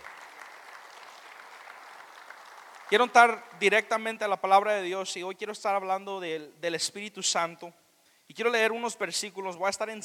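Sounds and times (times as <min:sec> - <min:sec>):
audience applause: 0:00.0 - 0:03.2
speech: 0:02.9 - 0:10.0.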